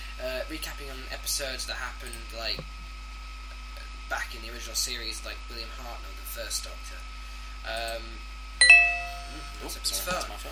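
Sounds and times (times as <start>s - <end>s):
speech: 0.2s - 2.8s, 4.1s - 10.5s
mobile phone ringing with a two-note chime: 8.6s - 9.6s.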